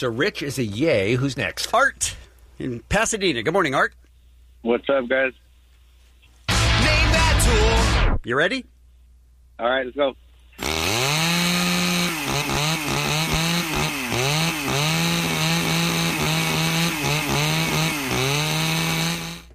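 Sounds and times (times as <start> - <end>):
speech: 0.0 - 4.0, 4.6 - 5.4, 7.5 - 8.7, 9.6 - 10.8
chainsaw running: 10.6 - 19.5.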